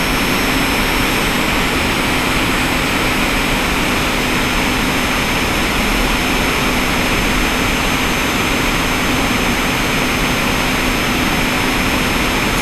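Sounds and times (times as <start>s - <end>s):
gaming computer fans running: 0.0s - 12.6s.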